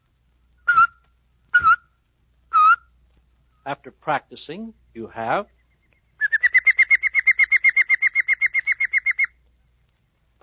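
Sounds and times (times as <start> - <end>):
whistle with tut-tut tongue motion: 0.6 - 1.9, 5.4 - 9.4
speech: 3.6 - 5.6.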